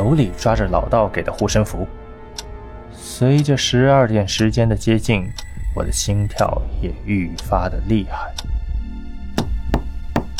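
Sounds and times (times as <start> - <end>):
speech: 0.1 - 2.0, 3.1 - 8.6
knocking on a door: 9.4 - 10.3.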